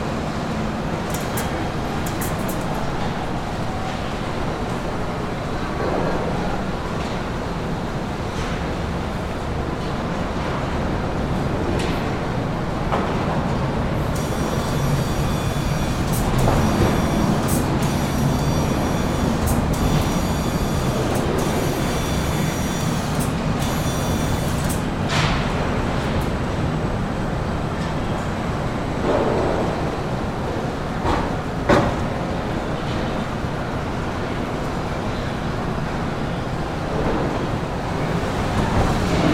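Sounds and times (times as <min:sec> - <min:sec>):
assembly plant factory ambience: 0:00.0 - 0:39.3.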